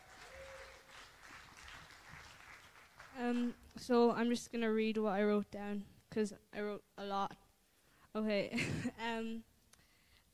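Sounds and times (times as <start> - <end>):
audience clapping: 0.0 - 3.7
speech: 3.2 - 7.4, 8.2 - 9.5.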